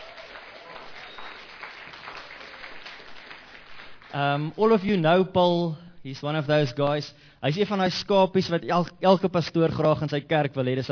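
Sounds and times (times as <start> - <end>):
audience clapping: 0.0 - 4.5
speech: 4.1 - 10.9.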